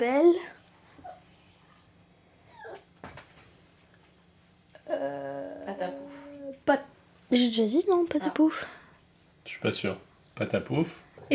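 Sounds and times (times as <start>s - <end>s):
speech: 0.0s - 0.6s, 7.3s - 8.8s, 9.5s - 11.3s
puppy whimpering: 2.5s - 3.0s.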